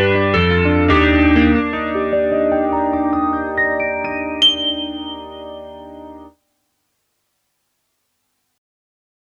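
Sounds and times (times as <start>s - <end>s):
electric grand piano through Yamaha SPX90 chorus effect: 0.0s - 6.3s.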